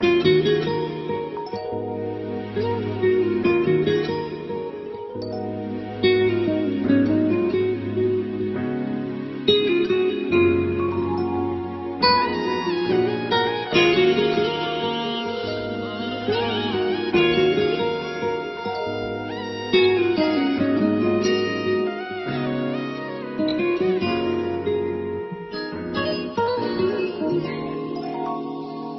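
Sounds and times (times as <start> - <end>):
classical music: 0.0 - 28.9.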